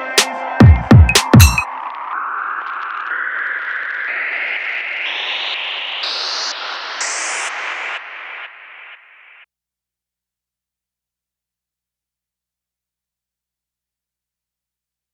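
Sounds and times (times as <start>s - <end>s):
white noise: 0.2s - 9.5s.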